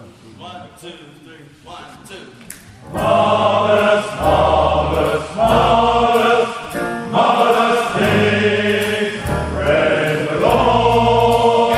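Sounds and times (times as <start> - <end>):
bass: 2.6 - 11.7.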